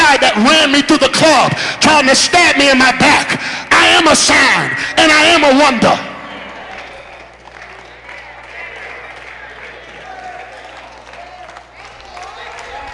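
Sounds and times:
speech: 0:00.3 - 0:06.1
audience clapping: 0:06.3 - 0:12.9.

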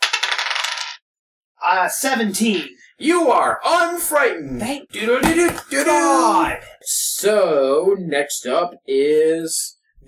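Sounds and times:
die tumbling across a hard tabletop: 0:00.0 - 0:01.0
speech: 0:01.7 - 0:10.0.

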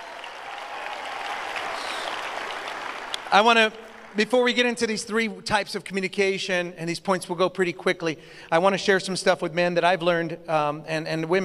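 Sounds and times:
hand clapping: 0:00.0 - 0:04.3
speech: 0:03.3 - 0:11.4.

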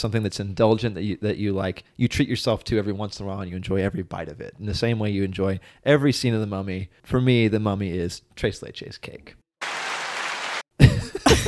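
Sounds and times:
speech: 0:00.0 - 0:09.4
applause button sound effect: 0:09.6 - 0:10.6.

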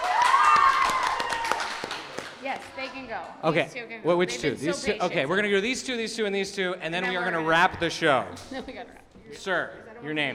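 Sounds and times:
audience applause: 0:00.0 - 0:02.5
speech: 0:02.9 - 0:10.3.

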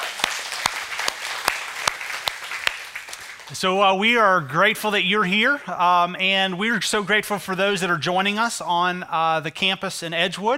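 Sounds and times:
church congregation applauding: 0:00.0 - 0:03.7
speech: 0:03.5 - 0:10.5.

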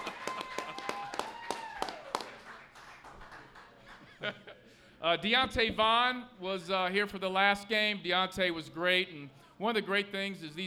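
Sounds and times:
whistle-like cheer: 0:00.0 - 0:02.3
small audience clapping: 0:00.0 - 0:04.2
faint laugh: 0:03.8 - 0:04.8
speech: 0:04.2 - 0:10.6.

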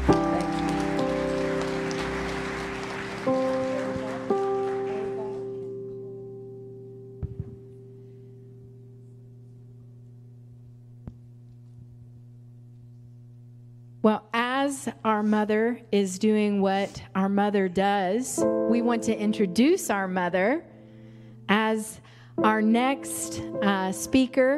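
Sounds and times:
audience hand clapping: 0:00.0 - 0:05.7
sustained keyboard chords: 0:00.0 - 0:12.4, 0:16.4 - 0:24.5
speech: 0:14.8 - 0:20.7, 0:21.5 - 0:24.5.

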